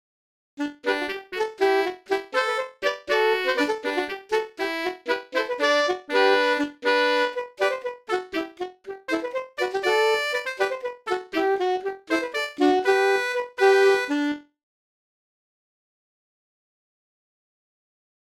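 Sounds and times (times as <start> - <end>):
bourree droite from the Morvan: 0.6 - 14.4.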